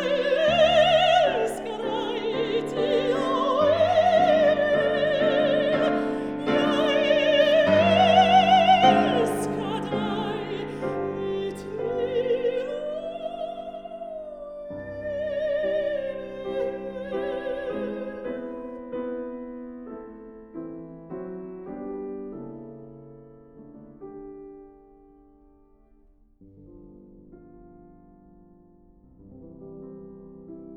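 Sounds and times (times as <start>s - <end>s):
person singing with piano: 0.0s - 18.9s
piano: 0.0s - 30.7s.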